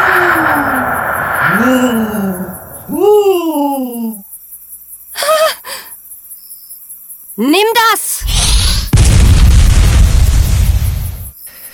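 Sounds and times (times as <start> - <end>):
fireball explosion sound effect: 0.0 - 3.2, 8.2 - 11.3
person speaking in quick animated bursts: 0.0 - 4.2, 7.4 - 8.2.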